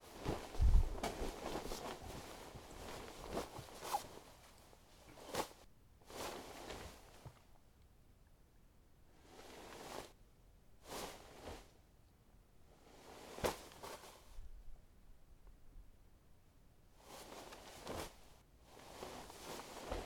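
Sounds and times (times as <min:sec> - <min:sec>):
heavier duvet rustling: 0:00.0 - 0:07.4, 0:09.2 - 0:10.2, 0:10.8 - 0:11.8, 0:12.8 - 0:14.5, 0:17.0 - 0:20.0.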